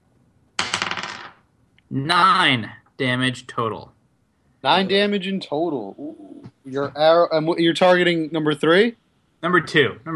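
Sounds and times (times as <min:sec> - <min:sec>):
eight-sided die rolling: 0:00.6 - 0:01.4
speech: 0:01.9 - 0:04.0, 0:04.6 - 0:10.1.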